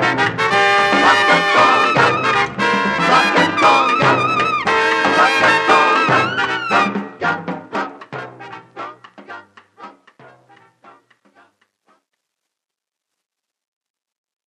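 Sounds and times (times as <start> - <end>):
conga playing rock rhythm: 0.0 - 11.5.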